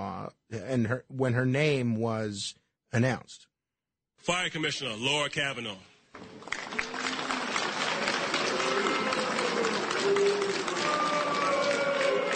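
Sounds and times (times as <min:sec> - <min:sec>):
speech: 0:00.5 - 0:03.5, 0:04.2 - 0:06.6
crowd booing: 0:06.2 - 0:12.3.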